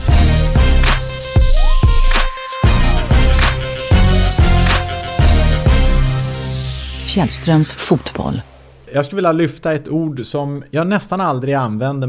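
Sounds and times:
custom signature jingle for a football segment on a sports show: 0.0s - 8.8s
speech: 7.2s - 12.0s.

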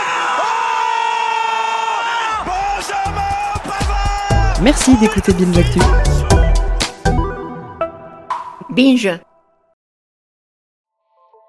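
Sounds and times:
sustained rising shout: 0.0s - 6.7s
football crowd cheering a goal: 0.0s - 7.0s
speech: 4.6s - 6.1s, 8.8s - 9.3s.

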